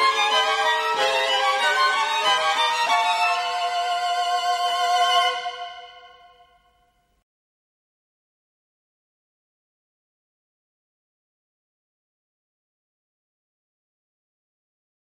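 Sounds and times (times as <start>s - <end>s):
string quartet: 0.0s - 6.4s.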